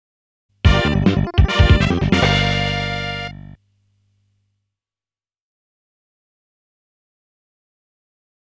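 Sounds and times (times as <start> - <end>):
fanfare: 0.7 - 3.5.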